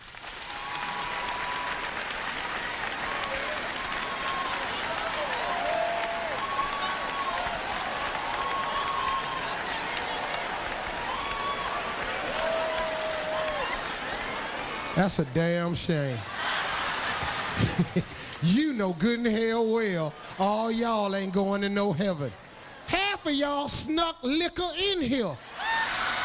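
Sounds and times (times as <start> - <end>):
audience applause: 0.0 - 23.6, 25.4 - 26.2
faint cheers and whoops: 0.4 - 2.1, 2.9 - 14.7, 25.5 - 26.2
speech: 15.0 - 16.4, 17.6 - 22.4, 23.2 - 25.4
laughter: 16.0 - 19.0.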